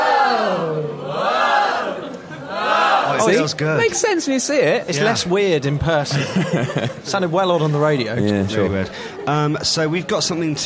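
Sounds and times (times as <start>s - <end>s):
audience chanting ooh together: 0.0s - 3.3s
laughter: 1.8s - 3.0s, 6.0s - 9.4s
speech: 3.2s - 10.6s.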